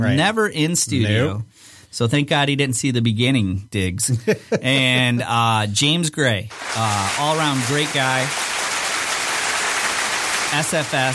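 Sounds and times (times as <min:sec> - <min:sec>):
speech: 0:00.0 - 0:08.5, 0:10.5 - 0:11.1
applause: 0:06.5 - 0:11.1.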